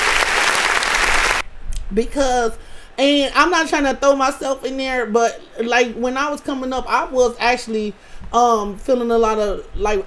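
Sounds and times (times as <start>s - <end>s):
audience applause: 0.0s - 1.4s
speech: 1.9s - 10.0s.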